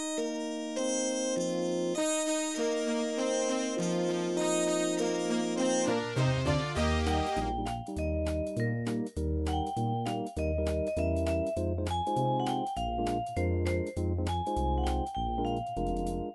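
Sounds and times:
1950 oldies MIDI music: 0.2s - 16.3s.

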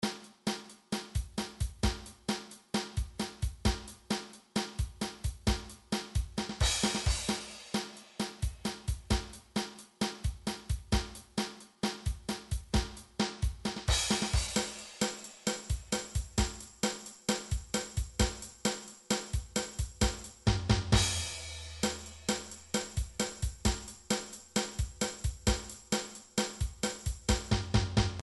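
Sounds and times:
MIDI pop drum beat: 0.0s - 28.2s.

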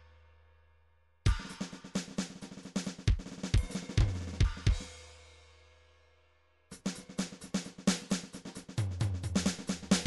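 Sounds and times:
MIDI drums: 1.3s - 5.1s, 6.7s - 10.0s.

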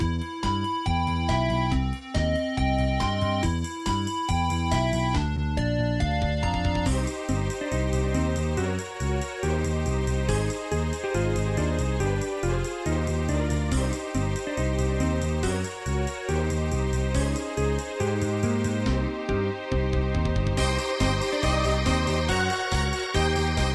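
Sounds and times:
sequenced Nintendo 64 techno remix: 0.0s - 23.7s.

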